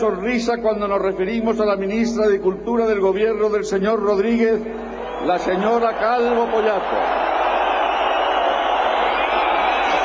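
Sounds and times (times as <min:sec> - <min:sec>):
speech: 0:00.0 - 0:07.2
audience booing: 0:05.2 - 0:10.0.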